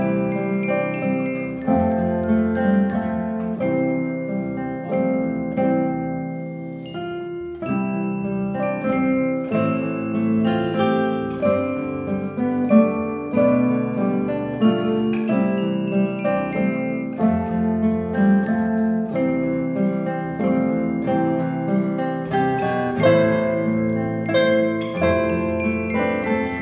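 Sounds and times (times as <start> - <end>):
musical movement with glockenspiel: 0.0 - 26.6.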